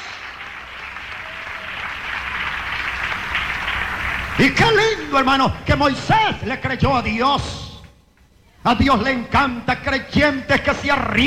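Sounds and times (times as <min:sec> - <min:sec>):
large crowd applauding: 0:00.0 - 0:04.9
speech: 0:04.4 - 0:07.6, 0:08.6 - 0:11.2.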